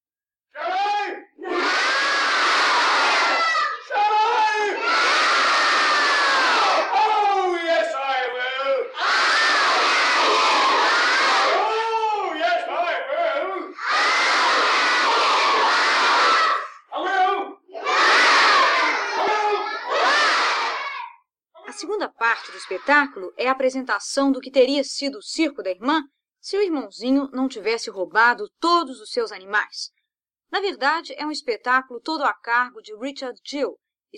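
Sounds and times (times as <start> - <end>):
villain shouting: 0.6 - 1.7, 3.8 - 4.8, 6.8 - 9.0, 11.4 - 13.8, 16.9 - 17.6, 18.9 - 19.8
children in theatre audience shouting back: 0.6 - 21.2, 22.2 - 23.2
speech: 22.3 - 34.1.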